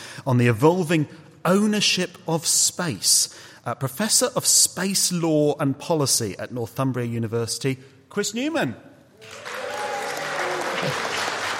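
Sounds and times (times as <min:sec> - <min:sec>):
speech: 0:00.2 - 0:09.6, 0:10.8 - 0:11.1
audience clapping to welcome a professor of space law and policy: 0:09.2 - 0:11.5.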